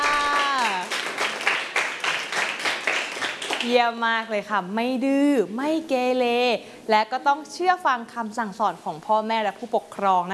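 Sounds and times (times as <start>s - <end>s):
classroom clapping for a classmate: 0.0s - 4.0s
speech: 3.6s - 10.3s.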